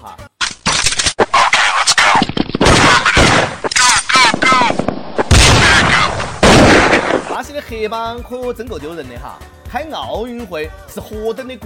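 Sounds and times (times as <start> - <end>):
gunfire in a street in Brazil: 1.2 - 7.4
voices shouting: 2.8 - 4.8, 5.6 - 6.3
speech: 7.7 - 11.6.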